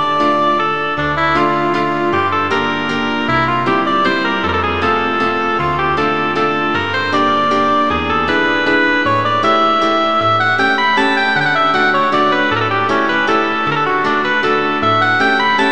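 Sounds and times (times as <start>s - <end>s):
oboe playing a waltz in A minor: 0.0s - 15.7s
piano accompaniment to a waltz in A minor: 0.0s - 15.7s.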